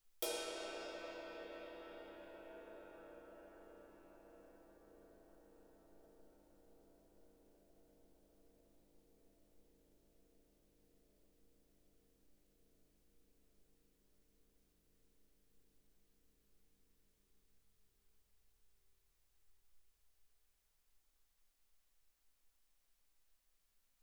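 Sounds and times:
suspended ride cymbal struck with stick shoulder: 0.2s - 4.0s.

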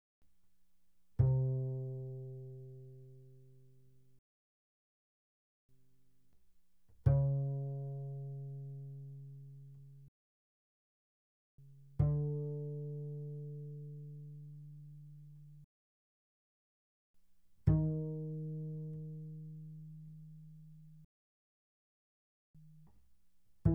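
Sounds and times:
double bass pizzicato fortissimo on the G string: 1.2s - 3.5s, 7.1s - 10.1s, 11.7s - 15.6s, 17.7s - 21.0s.

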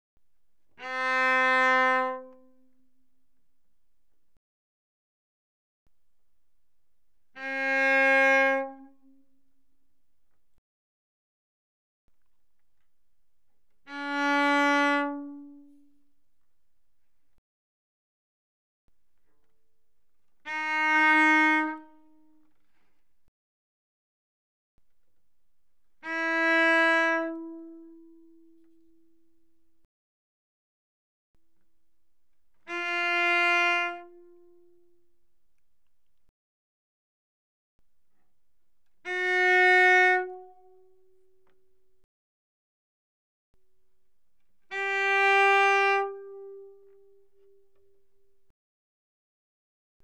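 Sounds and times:
cello bowed on the A string: 0.8s - 2.8s, 7.3s - 9.3s, 13.7s - 16.0s, 20.3s - 22.6s, 26.0s - 29.8s, 32.6s - 35.1s, 39.0s - 41.6s, 44.7s - 48.0s.

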